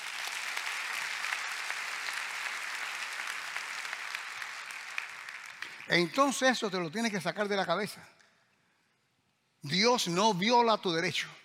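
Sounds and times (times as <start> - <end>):
audience applauding: 0.0 - 6.7
speech: 5.9 - 8.2, 9.6 - 11.4.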